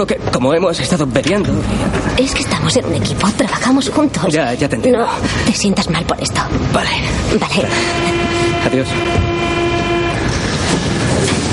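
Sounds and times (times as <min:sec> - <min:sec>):
speech: 0:00.0 - 0:09.6
railway train rumbling and clattering: 0:00.0 - 0:11.5
held horn-like tone: 0:07.6 - 0:10.8.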